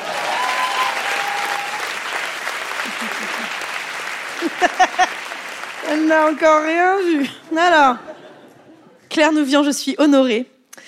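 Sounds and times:
audience applause: 0.0s - 7.9s
laughter: 2.7s - 5.4s, 7.2s - 9.0s
speech: 4.4s - 5.2s, 5.8s - 8.1s, 9.2s - 10.5s.

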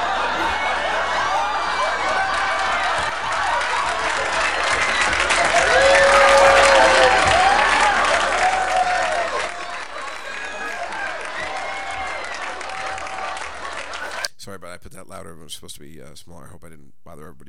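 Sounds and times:
studio audience laughing: 0.0s - 6.8s, 9.2s - 14.3s
studio audience applause: 0.0s - 14.3s
speech: 15.3s - 17.4s.

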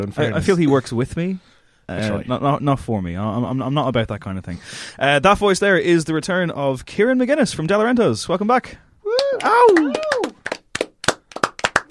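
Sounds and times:
speech: 0.0s - 10.4s
audience clapping: 9.1s - 11.8s.

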